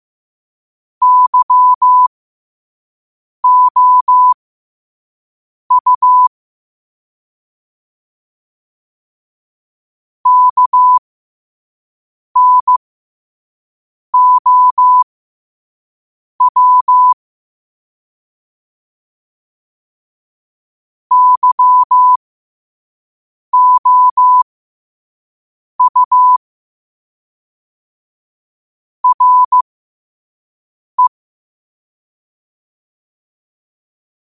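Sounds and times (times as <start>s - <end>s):
morse code at 5 wpm: 1.0s - 2.1s, 3.4s - 4.4s, 5.7s - 6.3s, 10.3s - 11.0s, 12.4s - 12.8s, 14.2s - 15.0s, 16.4s - 17.2s, 21.1s - 22.2s, 23.6s - 24.4s, 25.8s - 26.4s, 29.0s - 29.6s.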